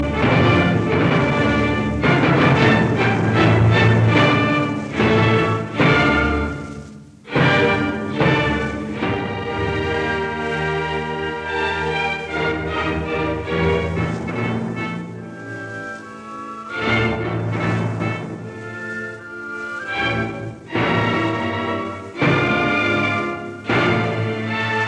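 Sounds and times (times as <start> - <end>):
choral allegro in D minor: 0.0 - 24.8.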